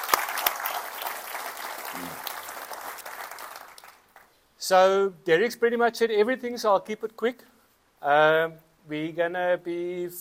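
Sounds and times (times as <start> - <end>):
round of applause: 0.0 - 4.3
speech: 2.0 - 2.2, 4.7 - 10.1.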